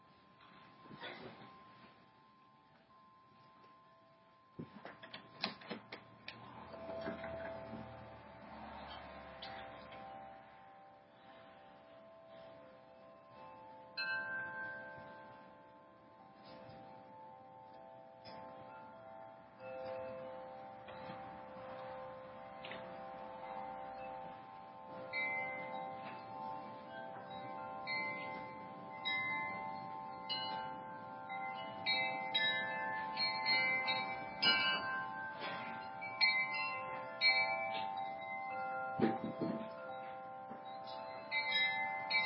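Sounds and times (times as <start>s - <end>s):
wind chimes blowing in the wind: 0.0s - 42.2s.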